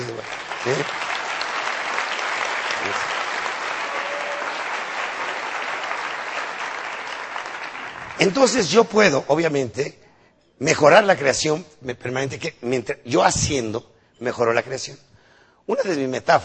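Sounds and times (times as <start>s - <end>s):
audience applause: 0.0s - 8.6s
speech: 0.2s - 1.0s, 8.2s - 10.0s, 10.6s - 15.1s, 15.7s - 16.4s
brief voices or cheers: 3.8s - 5.9s.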